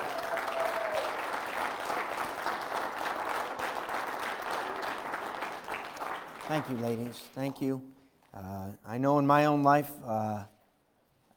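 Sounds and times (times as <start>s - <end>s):
audience applause: 0.0s - 7.4s
speech: 6.5s - 10.6s.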